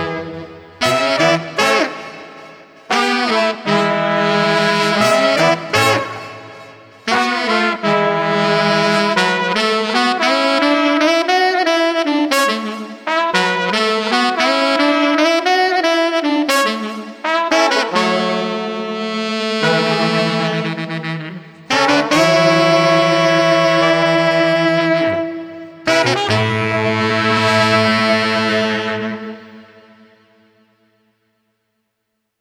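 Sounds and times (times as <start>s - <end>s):
hopeful street brass combo playing: 0.0s - 30.7s.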